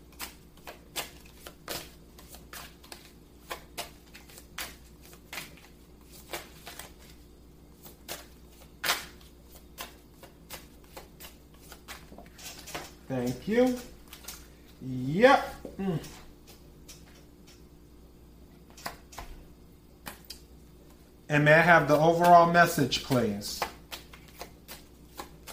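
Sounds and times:
low hum: 0.0 - 25.5
tarot cards being shuffled and drawn for a reading: 0.1 - 7.2, 7.8 - 14.8, 21.9 - 25.5
speech: 13.1 - 13.9, 14.8 - 16.2, 21.3 - 23.7.

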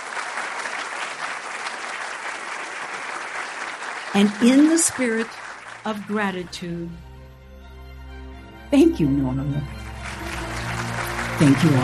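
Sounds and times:
audience applause: 0.0 - 6.6, 9.6 - 11.8
speech: 4.1 - 7.1, 8.7 - 9.8, 11.4 - 11.8.

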